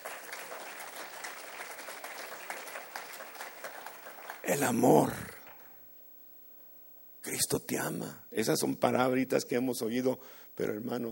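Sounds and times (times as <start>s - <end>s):
audience applause: 0.0s - 5.8s
speech: 4.5s - 5.3s, 7.4s - 11.1s.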